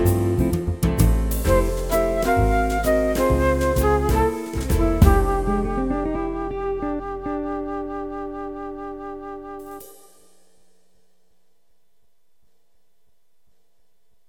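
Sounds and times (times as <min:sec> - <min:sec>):
jazz music: 0:00.0 - 0:10.4.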